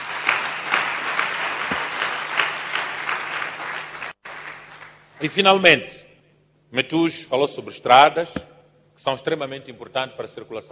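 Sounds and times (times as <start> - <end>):
crowd applause: 0.0 - 5.1
speech: 5.2 - 6.0, 6.7 - 10.7.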